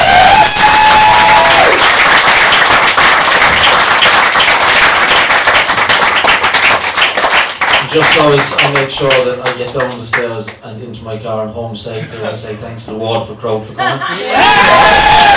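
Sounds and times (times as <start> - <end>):
audience applause: 0.0 - 10.2, 14.3 - 15.3
speech: 7.9 - 15.3
laughter: 11.9 - 12.7, 13.7 - 14.8.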